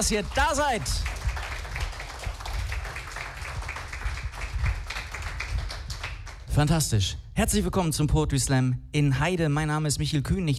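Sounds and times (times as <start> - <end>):
speech: 0.0 - 1.2, 6.6 - 10.5
audience clapping at a poetry slam: 0.0 - 6.5.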